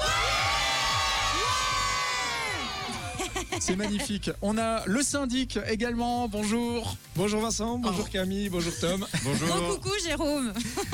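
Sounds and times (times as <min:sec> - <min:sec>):
crowd cheering and shouting: 0:00.0 - 0:03.5
laughter: 0:02.8 - 0:04.3, 0:08.6 - 0:09.8, 0:10.6 - 0:10.9
speech: 0:03.6 - 0:10.9.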